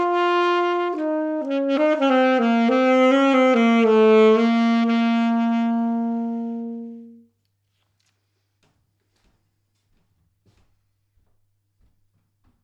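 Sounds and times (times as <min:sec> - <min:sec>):
saxophone improvisation: 0:00.0 - 0:07.4.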